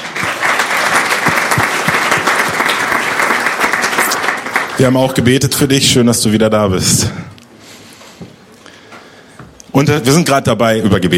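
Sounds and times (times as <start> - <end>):
group applause: 0.0 - 5.3
speech: 4.8 - 7.3, 9.8 - 11.1.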